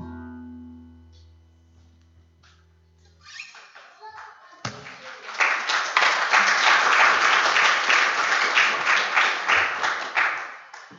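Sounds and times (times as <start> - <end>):
applause for a preacher before the sermon: 3.5 - 10.9.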